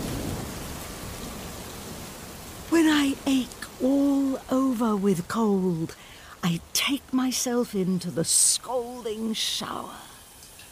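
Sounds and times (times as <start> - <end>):
thunderstorm with sudden heavy downpour: 0.0 - 4.5
speech: 3.1 - 10.1.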